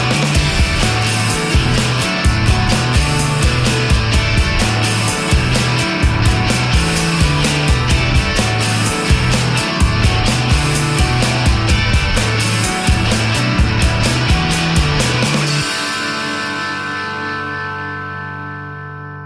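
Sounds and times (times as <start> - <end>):
rock background music loop: 0.0 - 19.2.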